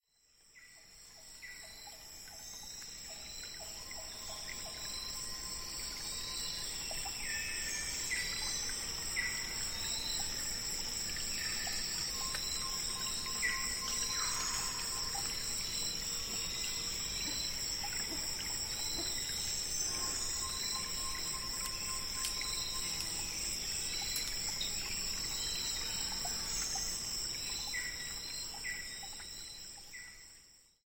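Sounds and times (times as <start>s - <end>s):
Taman Negara rainforest ambience in the morning: 0.0s - 30.8s.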